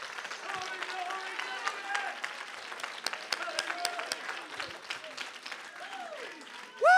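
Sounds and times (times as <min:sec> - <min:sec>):
audience clapping: 0:00.0 - 0:06.9.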